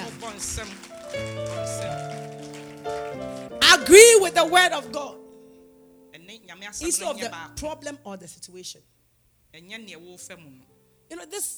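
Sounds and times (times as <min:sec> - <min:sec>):
audience clapping: 0:00.0 - 0:05.0
speech: 0:00.3 - 0:01.5, 0:03.8 - 0:05.2, 0:06.7 - 0:11.5.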